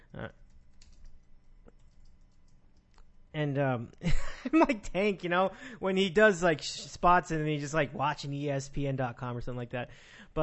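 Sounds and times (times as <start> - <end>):
speech: 0.2 - 0.4, 3.4 - 10.4
faint typing on a computer keyboard: 0.4 - 3.1.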